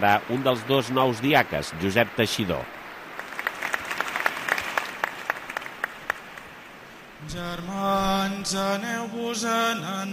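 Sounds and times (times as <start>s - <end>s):
speech: 0.0s - 2.8s, 7.3s - 10.1s
spontaneous crowd applause in church: 3.1s - 6.5s.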